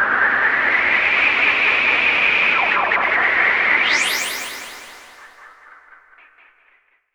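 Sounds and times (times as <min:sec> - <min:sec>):
sweep sound: 0:00.1 - 0:05.8.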